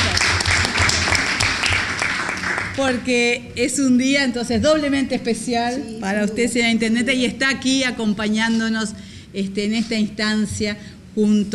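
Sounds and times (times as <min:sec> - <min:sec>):
audience applause: 0:00.0 - 0:02.8
speech: 0:02.8 - 0:11.5.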